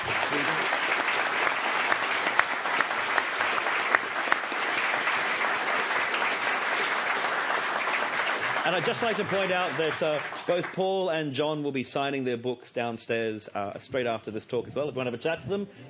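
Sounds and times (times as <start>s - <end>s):
audience applause: 0.0s - 11.2s
speech: 8.8s - 15.8s.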